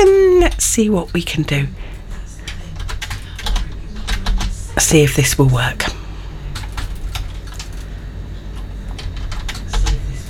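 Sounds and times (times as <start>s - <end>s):
speech: 0.7s - 2.0s, 4.8s - 6.0s
rapid typing on a computer keyboard: 2.4s - 4.6s, 6.6s - 7.9s, 8.9s - 10.2s.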